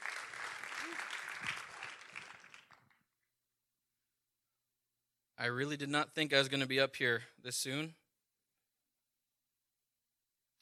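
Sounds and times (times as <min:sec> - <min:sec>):
audience clapping hands: 0:00.0 - 0:03.0
speech: 0:05.4 - 0:08.0.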